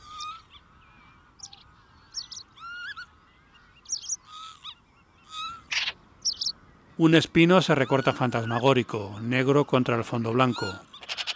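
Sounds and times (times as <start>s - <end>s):
wild geese honking: 5.3s - 11.3s
speech: 7.0s - 10.9s.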